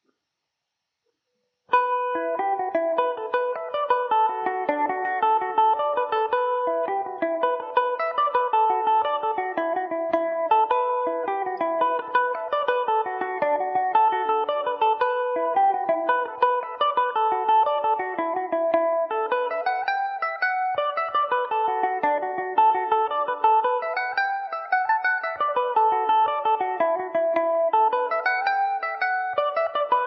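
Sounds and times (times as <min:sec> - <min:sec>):
Irish mandolin in E minor: 0:01.7 - 0:30.0.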